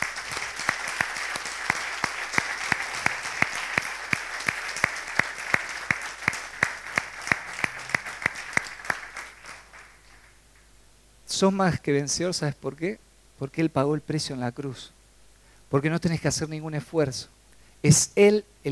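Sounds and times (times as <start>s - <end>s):
church congregation rhythmic clapping during a Sunday service: 0.0s - 10.7s
speech: 11.4s - 15.0s, 15.7s - 18.7s.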